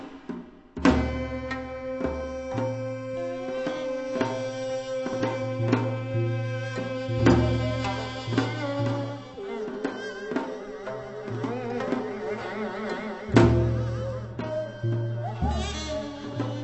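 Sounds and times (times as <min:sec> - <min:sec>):
folkloric traditional music: 0:00.8 - 0:16.6.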